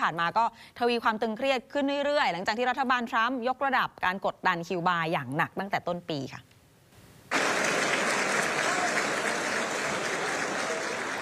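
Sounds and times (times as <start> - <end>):
speech: 0.0 - 6.6
applause at a press conference: 7.3 - 11.1.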